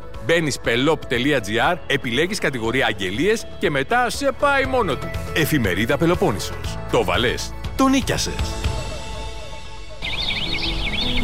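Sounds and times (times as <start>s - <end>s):
speech: 0.3s - 8.6s
birds singing early in the morning: 8.6s - 11.2s.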